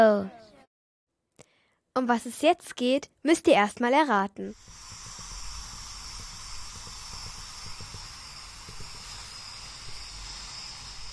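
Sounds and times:
speech: 0.0 - 0.4, 2.0 - 4.8
balloon pump inflating balloons: 4.5 - 11.1.

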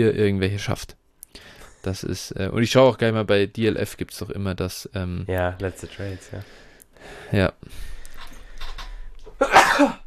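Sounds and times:
speech: 0.0 - 8.0, 9.4 - 10.0
sneeze: 9.4 - 10.0.

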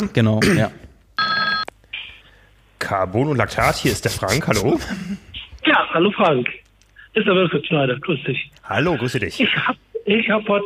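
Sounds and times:
speech: 0.0 - 0.8, 2.9 - 10.6
telephone ringing: 1.2 - 1.7.

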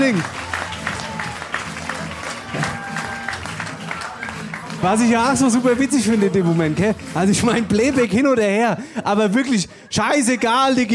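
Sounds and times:
applause for a performer: 0.0 - 8.1
speech: 0.1 - 0.5, 4.8 - 10.9.

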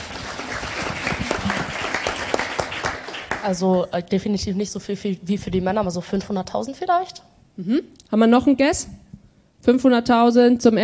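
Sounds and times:
audience applause: 0.0 - 3.7
speech: 3.4 - 9.0, 9.6 - 10.8.

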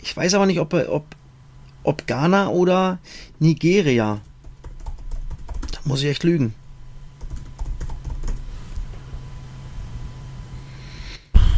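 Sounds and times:
steady low hum: 0.0 - 11.5
speech: 0.1 - 1.2, 1.8 - 4.3, 5.8 - 6.6
typing a Google search on a computer keyboard: 4.1 - 5.9, 7.2 - 8.4.

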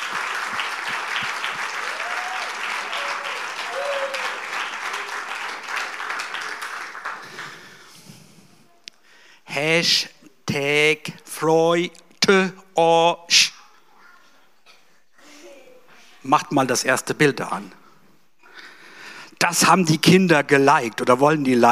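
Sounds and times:
cheers: 0.0 - 7.4
crowd applause for children: 0.0 - 8.1
speech: 9.6 - 13.1, 16.3 - 17.8, 19.5 - 21.6.

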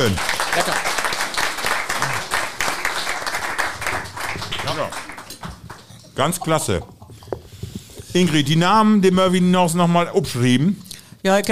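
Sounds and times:
speech: 0.0 - 0.9, 4.7 - 5.1, 6.2 - 7.0, 8.2 - 11.5
crowd applause: 0.0 - 6.8.

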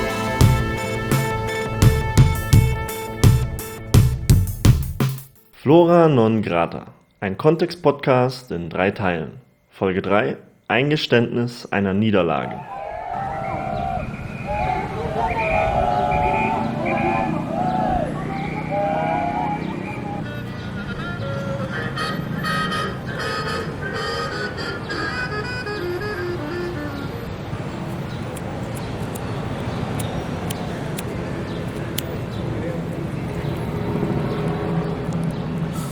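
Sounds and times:
street noise in Mexico City: 0.0 - 5.6, 12.7 - 35.9
speech: 5.6 - 13.3.

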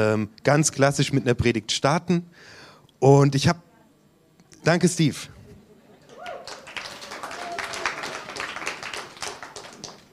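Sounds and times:
speech: 0.0 - 3.7, 4.6 - 5.4
faint voice or cheer: 6.1 - 8.9
audience applause: 6.1 - 10.1.

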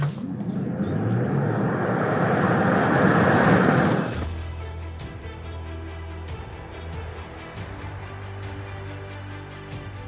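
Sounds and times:
Tesla Model Y tyre and wind roar accelerating from standstill: 0.0 - 4.6.

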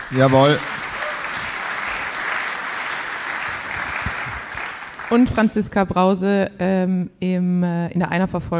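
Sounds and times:
applause from a group of people: 0.0 - 5.6
speech: 0.1 - 0.7, 5.1 - 8.5.

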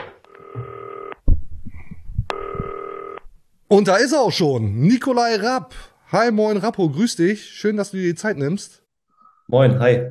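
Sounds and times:
telephone ringing: 0.0 - 1.2, 2.3 - 3.2
speech: 3.7 - 8.8, 9.5 - 10.0.

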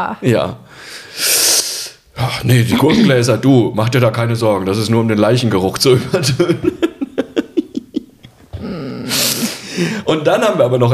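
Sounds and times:
speech: 0.0 - 1.3, 2.2 - 6.8, 9.8 - 10.9
cough: 2.7 - 3.2
laughter: 2.7 - 3.3, 5.9 - 10.0.

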